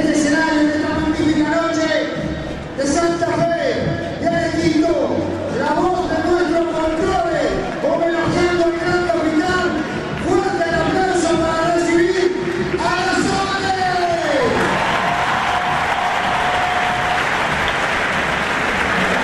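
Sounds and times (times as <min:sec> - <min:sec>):
booming announcer's voice: 0:00.0 - 0:14.6
stadium crowd cheering and applauding: 0:06.9 - 0:19.2.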